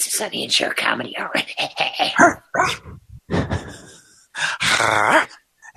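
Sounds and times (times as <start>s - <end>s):
speech: 0.2s - 2.9s
person imitating a dog barking: 1.4s - 3.1s, 4.6s - 5.7s.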